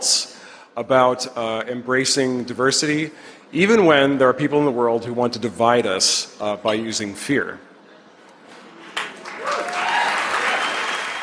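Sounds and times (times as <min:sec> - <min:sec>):
speech: 0:00.8 - 0:07.7
audience applause: 0:09.0 - 0:11.2
faint cheering voices: 0:09.2 - 0:11.2.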